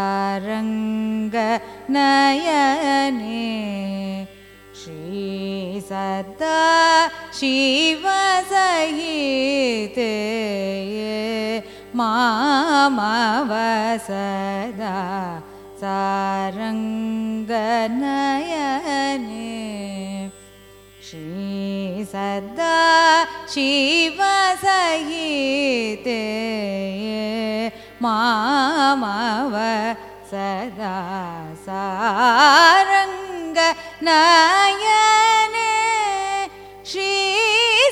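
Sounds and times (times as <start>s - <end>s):
carnatic raga music: 0.0s - 37.9s.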